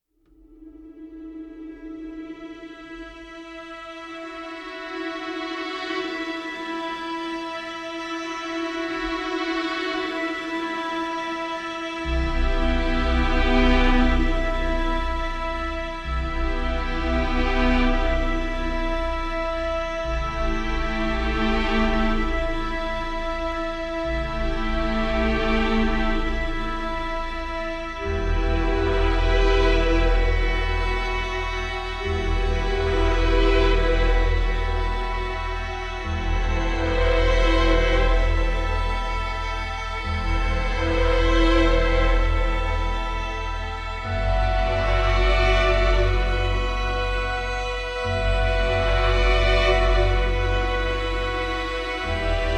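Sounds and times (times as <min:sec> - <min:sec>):
ambient music: 0:00.3 - 0:52.5.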